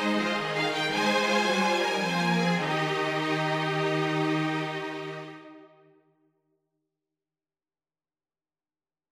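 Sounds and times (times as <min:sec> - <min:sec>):
string instrument: 0:00.0 - 0:06.0.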